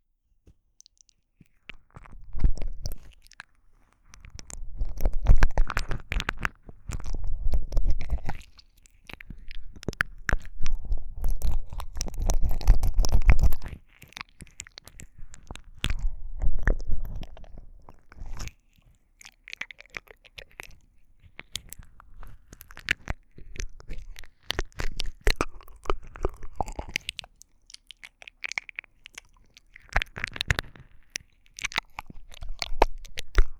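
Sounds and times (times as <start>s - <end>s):
ASMR ear licking sounds: 0.8s - 33.5s.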